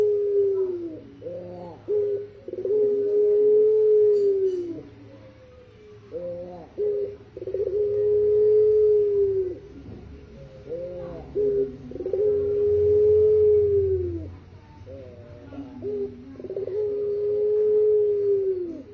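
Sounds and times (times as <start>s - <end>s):
white Barbary dove cooing: 0.0s - 18.9s.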